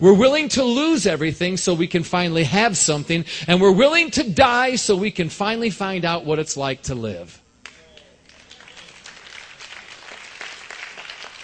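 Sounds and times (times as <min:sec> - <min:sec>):
speech: 0:00.0 - 0:07.4
scattered applause from a few listeners: 0:07.6 - 0:11.4.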